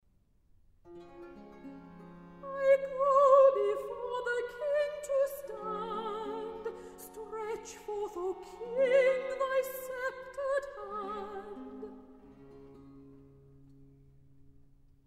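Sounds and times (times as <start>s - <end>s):
person singing recitative: 2.5s - 11.9s.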